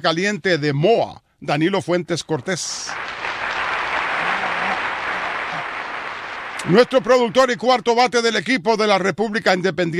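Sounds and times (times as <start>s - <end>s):
speech: 0.0s - 3.1s, 6.6s - 9.9s
applause sound effect played from the booth: 2.9s - 7.8s.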